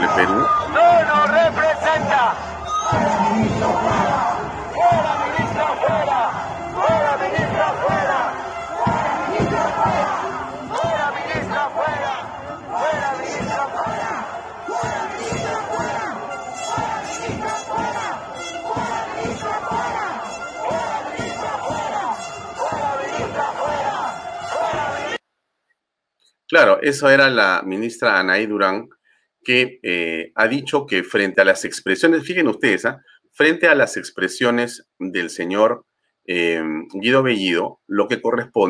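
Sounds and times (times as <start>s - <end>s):
speech: 0.0s - 1.5s, 26.6s - 38.6s
crowd chanting protest slogans: 0.0s - 25.2s.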